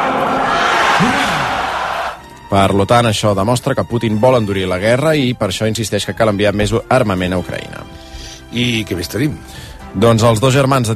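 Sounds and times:
crowd shouting hurrahs in salute to soldiers: 0.0s - 2.2s
speech: 2.5s - 7.8s, 8.5s - 10.9s.

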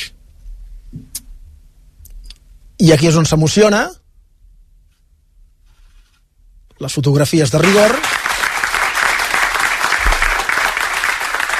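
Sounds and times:
speech: 2.8s - 4.0s, 6.8s - 8.2s
applause from roomful of journalists: 7.5s - 11.5s.

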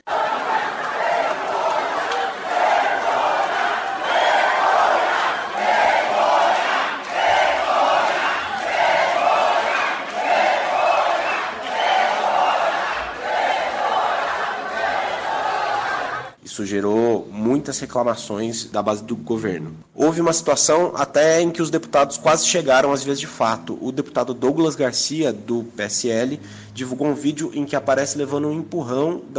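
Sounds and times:
protesters chanting slogans in unison: 0.0s - 16.4s
speech: 17.6s - 29.3s.

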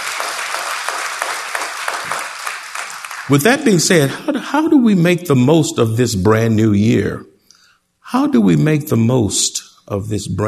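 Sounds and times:
crowd applause: 0.0s - 4.1s
speech: 3.3s - 7.3s, 8.1s - 10.4s.

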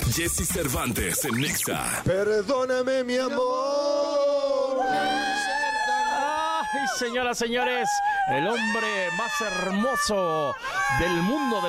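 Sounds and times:
speech: 0.1s - 5.2s, 6.7s - 11.6s
crowd screaming and cheering: 3.8s - 11.6s.

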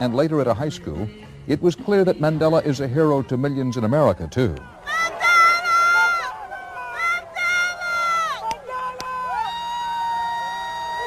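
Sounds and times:
speech: 0.0s - 4.8s
large crowd cheering and shouting: 3.0s - 11.0s.

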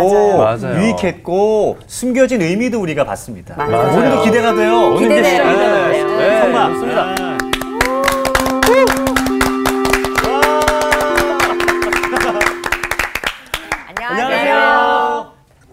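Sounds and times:
speech: 0.0s - 7.4s
crowd cheering: 3.6s - 15.2s.

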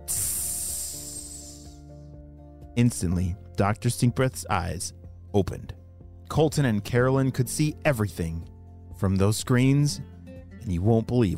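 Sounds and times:
sizzle like water poured on fire: 0.0s - 1.8s
speech: 2.8s - 11.3s.

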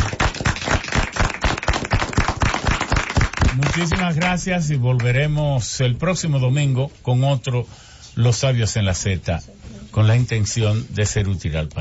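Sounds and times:
audience applause: 0.0s - 4.4s
speech: 3.8s - 11.7s.

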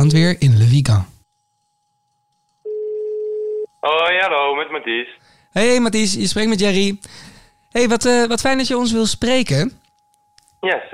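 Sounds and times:
speech: 0.0s - 1.1s, 3.8s - 9.8s, 10.6s - 10.9s
telephone ringing tone while placing a call: 2.6s - 3.7s.

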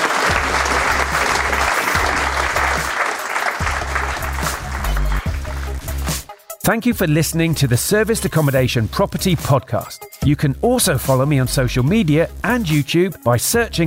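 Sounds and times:
audience applause: 0.0s - 6.4s
speech: 6.7s - 13.8s.

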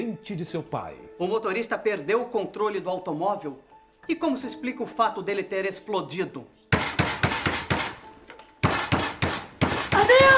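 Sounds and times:
speech: 0.0s - 6.7s
fist pounding on a door: 6.8s - 8.0s, 8.6s - 10.3s.

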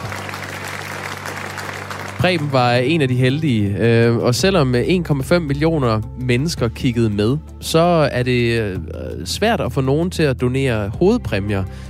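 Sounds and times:
studio audience applause: 0.0s - 3.2s
speech: 2.2s - 11.8s.

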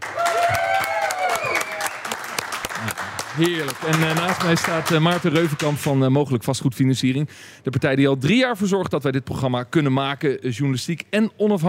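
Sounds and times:
live crowd applauding: 0.0s - 5.8s
speech: 3.4s - 11.6s.

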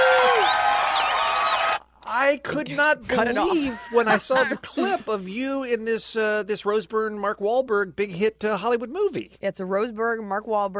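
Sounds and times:
crowd applause sound effect: 0.0s - 1.8s
whoops and whistles: 0.0s - 1.8s
speech: 2.3s - 10.7s.

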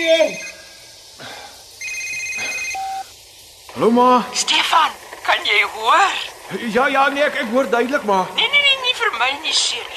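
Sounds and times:
electronic telephone ringing: 0.0s - 0.7s, 1.8s - 3.1s
speech: 3.8s - 8.6s, 9.2s - 9.9s.

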